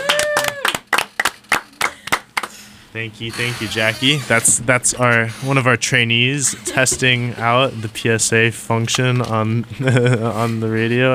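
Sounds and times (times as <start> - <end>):
people clapping: 0.0 - 2.6
speech: 2.9 - 11.1.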